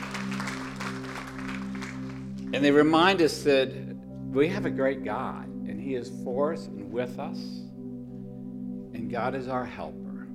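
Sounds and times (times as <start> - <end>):
crowd clapping: 0.0 - 2.5
speech: 2.5 - 7.6, 9.1 - 10.0.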